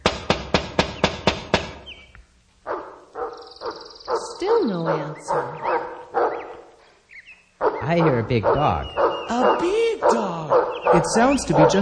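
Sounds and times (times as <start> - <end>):
knocking on a door: 0.0 - 1.9
speech: 4.4 - 5.8, 7.9 - 11.8.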